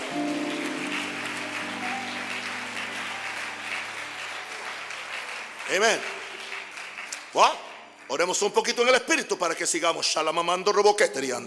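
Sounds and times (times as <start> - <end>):
audience applause: 0.0 - 8.6
speech: 5.7 - 6.2, 7.3 - 11.4.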